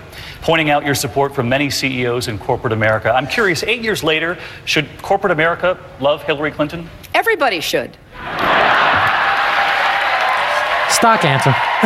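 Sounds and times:
speech: 0.4 - 8.4, 11.0 - 11.8
audience applause: 8.2 - 11.8.

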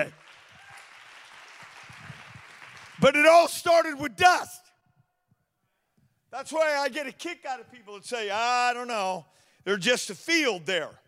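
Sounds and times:
crowd clapping hands: 0.0 - 3.4
speech: 3.0 - 4.6, 6.3 - 11.0.

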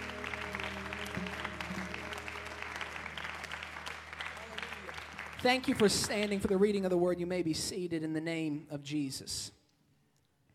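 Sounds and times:
audience clapping hands in praise: 0.0 - 7.0
speech: 5.4 - 9.6.

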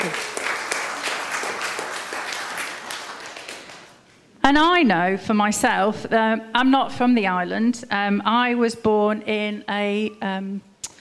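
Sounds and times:
audience clapping: 0.0 - 4.2
speech: 4.5 - 10.7.

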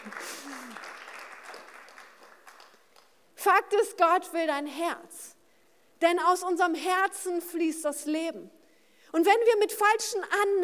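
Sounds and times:
audience clapping: 0.0 - 3.3
speech: 3.5 - 5.3, 6.0 - 10.6.

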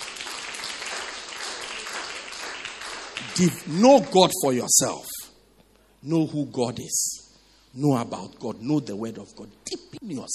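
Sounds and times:
crowd clapping: 0.0 - 4.4
speech: 3.4 - 5.2, 6.0 - 10.3.

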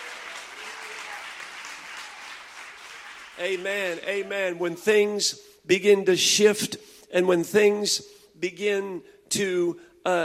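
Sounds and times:
audience clapping hands: 0.0 - 4.7
speech: 3.4 - 10.2.

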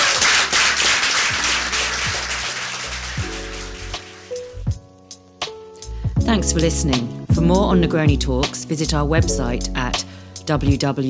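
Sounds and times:
audience round of applause: 0.0 - 4.6
speech: 6.3 - 11.0.

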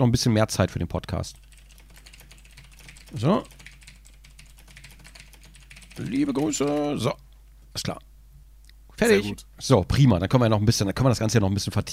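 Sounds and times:
speech: 0.0 - 1.4, 3.1 - 3.6, 6.0 - 7.2, 7.8 - 8.1, 9.0 - 11.9
typing a short message on a computer keyboard: 1.3 - 7.2.

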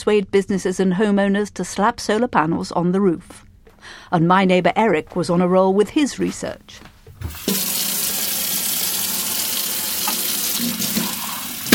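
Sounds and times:
speech: 0.0 - 7.6
tap water running into a sink while washing dishes: 7.2 - 11.7.

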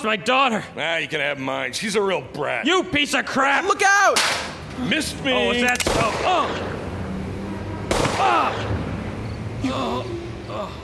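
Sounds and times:
speech: 0.0 - 6.7, 8.2 - 8.8, 9.6 - 10.8
noise: 0.0 - 10.8
raised voices: 3.6 - 10.8
gunshot: 5.8 - 6.6, 7.9 - 8.7.

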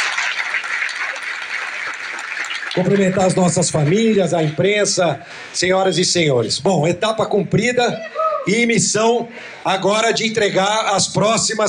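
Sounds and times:
crowd applause: 0.0 - 5.1
speech: 2.8 - 11.6.

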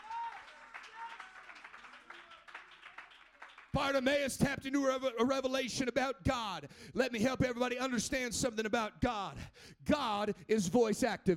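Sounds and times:
audience shouting: 0.0 - 2.3
audience clapping: 0.0 - 4.7
speech: 3.8 - 11.3.

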